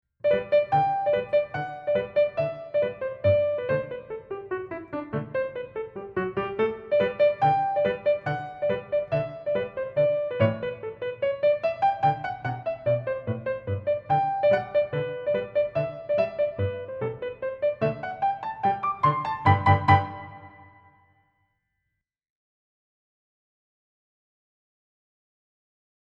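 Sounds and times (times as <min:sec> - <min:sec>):
piano: 0:00.2 - 0:21.2.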